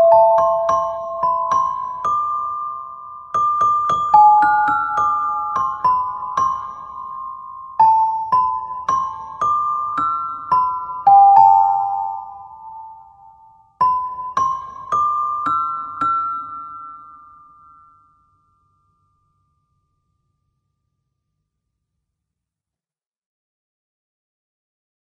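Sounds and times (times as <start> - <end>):
celesta solo: 0.0 - 17.8.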